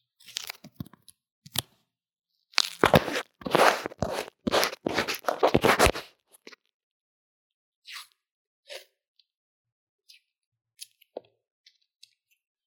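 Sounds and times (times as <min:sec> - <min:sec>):
light taps and scrapes: 0:02.6 - 0:06.1.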